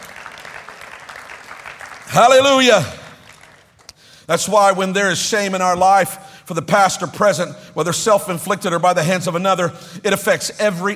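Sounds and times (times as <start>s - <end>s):
audience clapping hands: 0.0s - 4.1s
speech: 2.1s - 3.0s, 4.3s - 10.9s.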